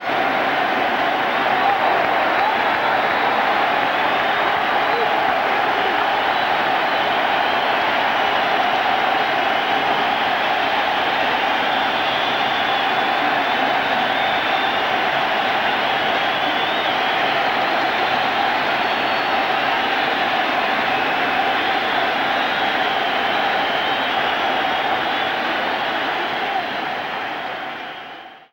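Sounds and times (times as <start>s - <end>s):
baseball crowd cheering: 0.0s - 28.5s.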